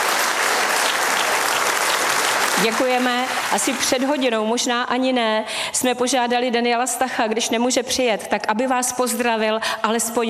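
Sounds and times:
audience applause at an awards ceremony: 0.0 - 4.4
speech: 2.6 - 10.2.

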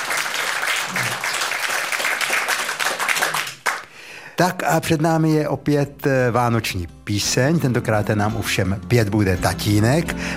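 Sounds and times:
audience applause: 0.0 - 3.9
speech: 4.4 - 10.3.

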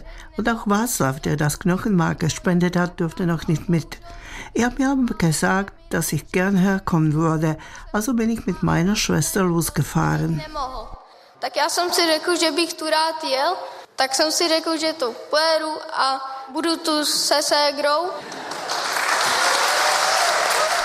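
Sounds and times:
speech: 0.4 - 18.5
audience applause: 18.2 - 20.8.

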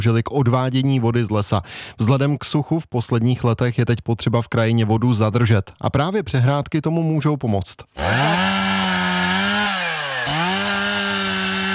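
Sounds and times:
speech: 0.0 - 8.7
chainsaw cutting pieces of wood: 8.0 - 11.7.

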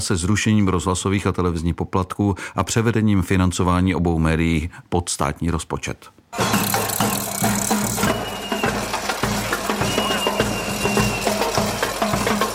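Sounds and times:
speech: 0.0 - 6.8
dense crowd noise: 6.4 - 12.5
drums banging at a protest march: 6.4 - 12.5.

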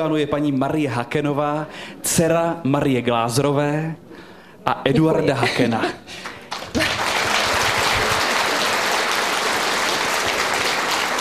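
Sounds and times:
speech: 0.0 - 6.9
studio audience applause: 6.2 - 11.1.

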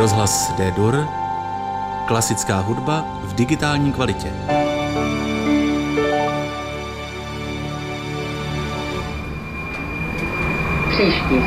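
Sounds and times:
speech: 0.0 - 1.2, 2.1 - 4.6, 11.0 - 11.4
Prague metro train running: 3.7 - 11.4.

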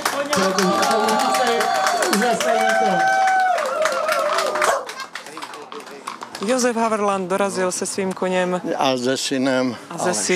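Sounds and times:
crowd clapping for arriving riders: 0.0 - 6.8
speech: 0.2 - 0.8, 6.4 - 10.3.

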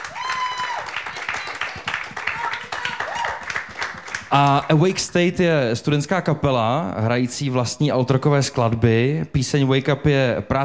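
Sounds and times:
audience applause: 0.0 - 5.0
speech: 4.3 - 10.6.

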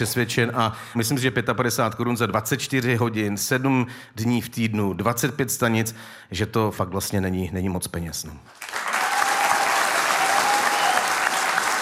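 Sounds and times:
speech: 0.0 - 8.8
applause from a sizable audience: 8.5 - 11.8.

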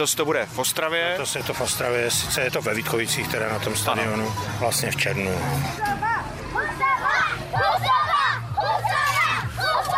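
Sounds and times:
speech: 0.0 - 6.2
schoolchildren fans cheering at football tournament: 6.6 - 9.9.

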